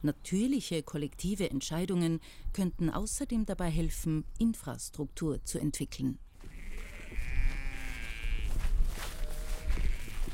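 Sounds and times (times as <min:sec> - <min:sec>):
speech: 0:00.0 - 0:06.2
sheep bleating in a field: 0:06.4 - 0:10.3.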